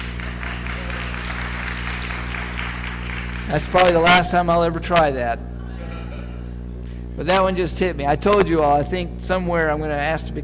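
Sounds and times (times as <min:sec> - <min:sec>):
audience applause: 0:00.0 - 0:04.1
speech: 0:03.5 - 0:05.5, 0:07.2 - 0:10.4.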